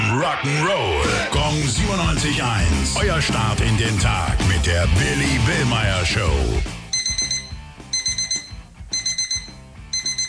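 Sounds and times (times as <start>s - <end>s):
speech: 0.1s - 6.8s
alarm clock ringing: 6.9s - 10.2s.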